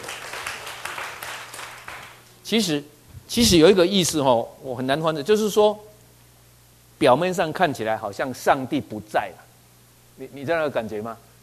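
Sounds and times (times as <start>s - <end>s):
group clapping: 0.0s - 2.3s
speech: 2.5s - 5.9s, 7.0s - 9.5s, 10.2s - 11.3s.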